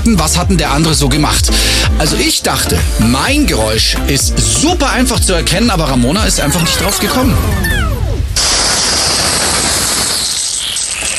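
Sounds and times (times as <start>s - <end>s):
speech: 0.0s - 7.8s
garden hose spraying water: 8.4s - 11.1s.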